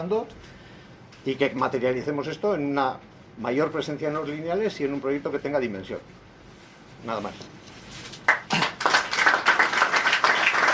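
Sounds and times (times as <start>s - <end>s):
speech: 0.0s - 0.6s, 1.2s - 6.2s, 7.0s - 7.7s
audience applause: 8.3s - 10.7s.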